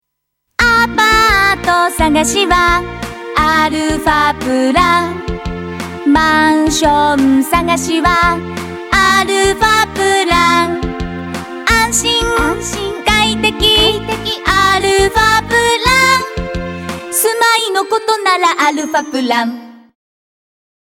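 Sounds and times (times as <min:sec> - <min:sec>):
song: 0:00.6 - 0:20.0.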